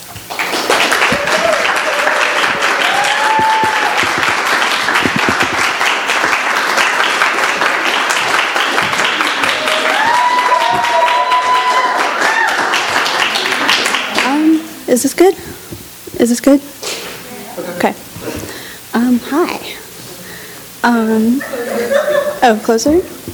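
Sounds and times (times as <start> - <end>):
audience applause welcoming a speaker: 0.0 - 14.6
speech: 15.0 - 15.5, 16.2 - 16.7, 19.2 - 19.6, 20.8 - 23.2
laughter: 21.3 - 23.2.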